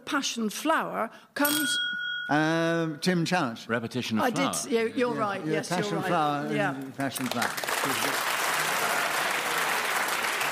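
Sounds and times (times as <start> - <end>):
speech: 0.1 - 8.3
audience clapping: 6.6 - 10.5.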